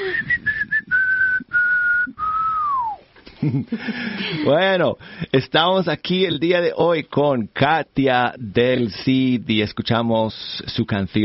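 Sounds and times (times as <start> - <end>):
person whistling: 0.0 - 3.0
speech: 3.4 - 11.2.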